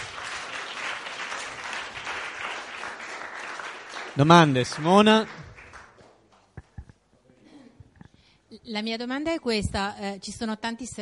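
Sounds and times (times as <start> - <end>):
audience applause: 0.0 - 6.1
speech: 4.2 - 5.5, 8.7 - 10.9.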